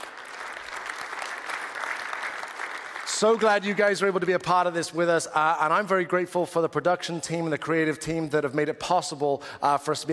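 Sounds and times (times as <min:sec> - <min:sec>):
church congregation applause at a morning service: 0:00.0 - 0:04.8
speech: 0:03.2 - 0:10.1.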